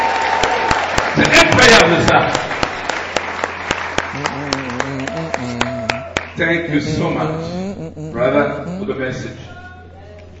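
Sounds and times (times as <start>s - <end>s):
church congregation clapping: 0.0s - 6.4s
speech: 6.4s - 9.5s.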